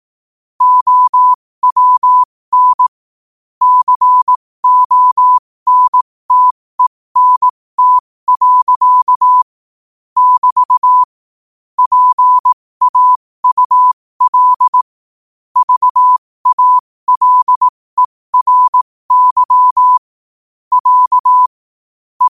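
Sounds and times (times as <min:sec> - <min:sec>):
morse code at 5 wpm: 0:00.6 - 0:02.9, 0:03.6 - 0:09.5, 0:10.2 - 0:11.1, 0:11.8 - 0:14.8, 0:15.6 - 0:20.1, 0:20.7 - 0:21.6.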